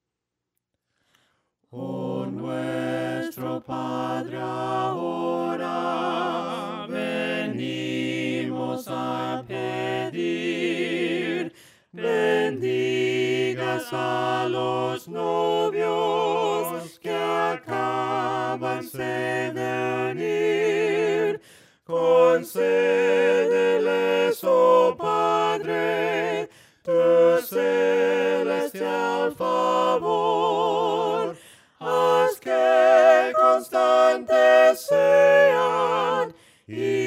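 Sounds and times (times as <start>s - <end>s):
voices singing hymns a cappella: 1.7s - 37.0s.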